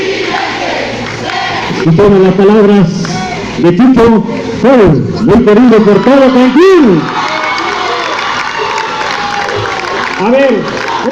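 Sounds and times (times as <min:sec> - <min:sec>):
crowd in Cancún cheering and applauding: 0:00.0 - 0:02.0, 0:05.2 - 0:11.1
speech: 0:01.8 - 0:03.0, 0:03.6 - 0:07.2, 0:10.2 - 0:11.1
shouts and whoops: 0:05.2 - 0:11.1.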